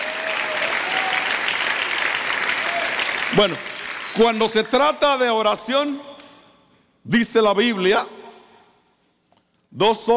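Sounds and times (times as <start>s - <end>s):
audience clapping: 0.0s - 4.8s
speech: 3.4s - 6.1s, 7.0s - 8.2s, 9.7s - 10.1s.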